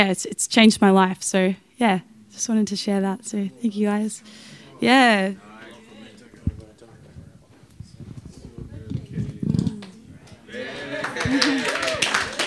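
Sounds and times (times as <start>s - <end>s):
speech: 0.0s - 5.5s
laughter: 2.8s - 12.4s
audience clapping: 5.5s - 12.4s.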